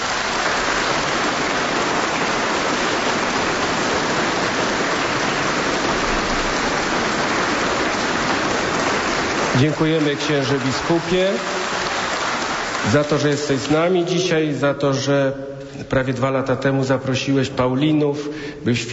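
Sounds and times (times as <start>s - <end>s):
sustained applause from a large crowd: 0.0s - 14.2s
speech: 9.6s - 11.6s, 12.8s - 18.9s.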